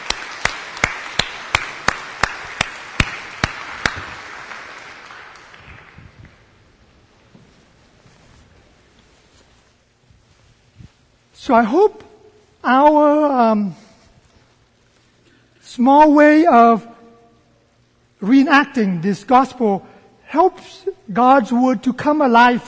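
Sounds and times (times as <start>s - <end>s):
crowd applauding: 0.0s - 6.7s
speech: 11.5s - 12.0s, 12.6s - 13.8s, 15.8s - 16.9s, 18.2s - 22.6s.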